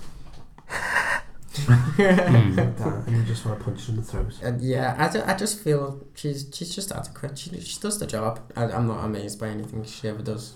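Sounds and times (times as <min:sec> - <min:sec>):
quiet breath noise: 0:00.6 - 0:01.6
voice imitating an actress's shocked gasp: 0:00.7 - 0:01.6
laughter: 0:00.7 - 0:04.4
speech: 0:01.7 - 0:10.5.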